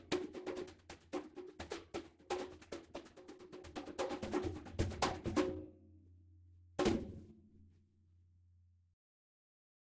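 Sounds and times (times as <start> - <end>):
residual noise from congas: 0.0 - 5.7, 6.8 - 7.2.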